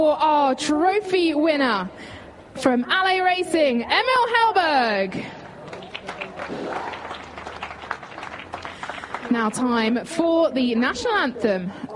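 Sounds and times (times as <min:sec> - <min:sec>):
speech: 0:00.0 - 0:05.4, 0:09.3 - 0:11.9
crowd applauding race winners at a podium ceremony: 0:05.4 - 0:09.8.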